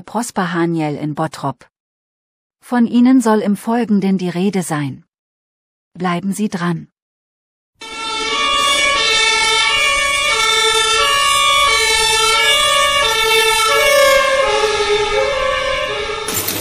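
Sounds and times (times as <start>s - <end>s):
speech: 0.0s - 1.7s, 2.6s - 5.1s, 6.0s - 6.9s
two-tone emergency siren: 7.8s - 16.5s.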